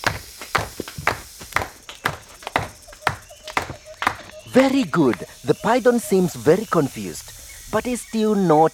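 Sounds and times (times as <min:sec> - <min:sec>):
hands clapping: 0:00.0 - 0:05.3
speech: 0:04.5 - 0:08.7.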